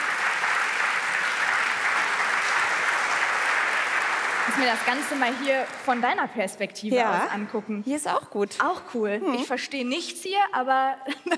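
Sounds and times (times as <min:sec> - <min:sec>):
applause: 0:00.0 - 0:06.5
speech: 0:04.6 - 0:11.3.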